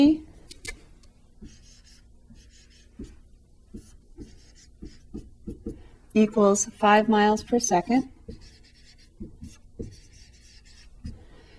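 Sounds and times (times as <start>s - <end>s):
speech: 0.0s - 0.3s, 6.2s - 8.1s
pen scratching while writing math symbols by hand: 1.4s - 5.8s, 8.3s - 11.2s.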